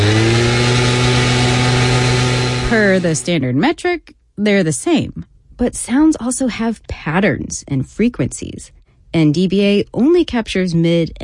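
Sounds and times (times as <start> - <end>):
gas-powered leaf blower roaring: 0.0 - 3.3
speech: 2.7 - 11.2.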